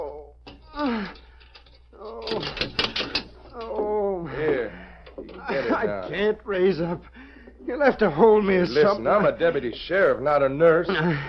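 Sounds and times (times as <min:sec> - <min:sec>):
door being unlocked: 0:02.1 - 0:03.4
laughter: 0:03.9 - 0:09.8, 0:10.6 - 0:11.2
speech: 0:06.2 - 0:11.2.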